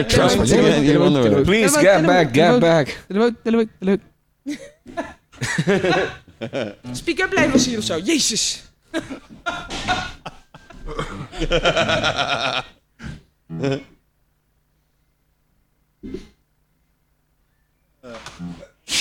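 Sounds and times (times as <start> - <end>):
speech: 0.0 - 13.9, 16.0 - 16.3, 18.0 - 18.9
laughter: 4.5 - 6.8, 8.9 - 12.8
sneeze: 16.0 - 16.4, 18.6 - 18.9.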